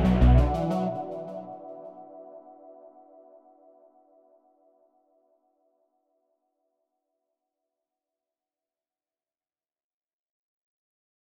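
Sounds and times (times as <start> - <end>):
synthwave music: 0.0 - 4.1.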